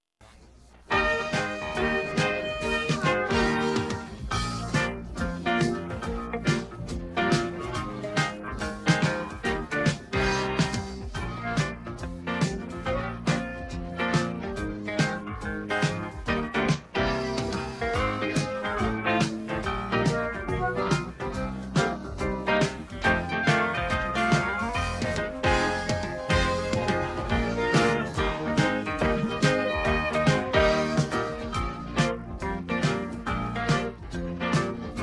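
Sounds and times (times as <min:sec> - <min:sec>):
music: 0:00.2 - 0:35.0.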